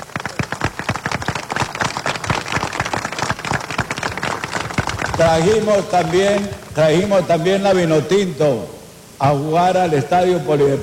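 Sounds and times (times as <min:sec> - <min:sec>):
audience applause: 0:00.0 - 0:07.3
speech: 0:05.2 - 0:10.8.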